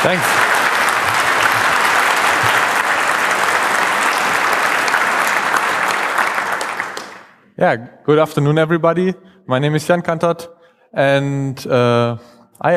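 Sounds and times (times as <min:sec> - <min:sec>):
speech: 0:00.0 - 0:00.4, 0:07.6 - 0:12.7
audience applause: 0:00.0 - 0:07.4.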